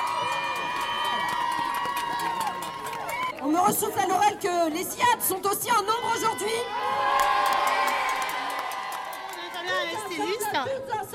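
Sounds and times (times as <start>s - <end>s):
crowd applauding: 0.0s - 3.6s, 7.0s - 10.4s
crowd cheering: 0.0s - 3.6s, 5.7s - 10.6s
speech: 3.4s - 7.8s, 10.2s - 11.1s.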